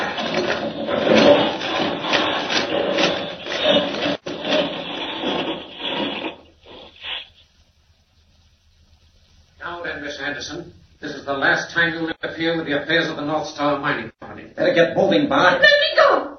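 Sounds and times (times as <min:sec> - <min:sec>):
vehicle boring through solid rock in a radio-drama mine: 0:00.0 - 0:07.0
loud continuous grinding rasp with churning scrape: 0:00.0 - 0:07.4
speech: 0:11.4 - 0:16.3.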